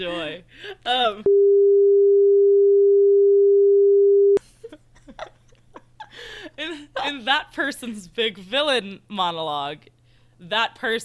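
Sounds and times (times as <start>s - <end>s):
speech: 0.0s - 1.6s, 6.2s - 11.0s
censor bleep tone: 1.3s - 4.4s.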